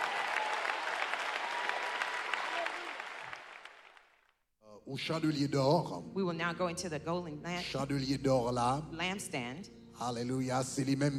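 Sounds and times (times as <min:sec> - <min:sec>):
audience applauding: 0:00.0 - 0:04.3
speech: 0:04.9 - 0:11.1.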